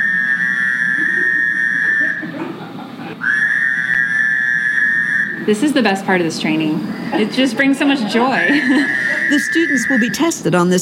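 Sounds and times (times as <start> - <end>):
Fowler's toad buzzing call: 0.0 - 2.2, 3.2 - 5.4, 8.8 - 10.3
laughter: 0.8 - 3.3, 7.2 - 10.2
speech: 5.5 - 10.7.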